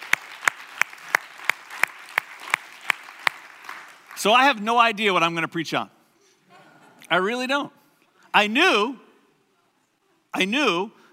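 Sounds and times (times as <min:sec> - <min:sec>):
audience clapping in unison: 0:00.0 - 0:04.9
speech: 0:04.2 - 0:06.0, 0:07.1 - 0:07.8, 0:08.4 - 0:09.0, 0:10.3 - 0:11.0.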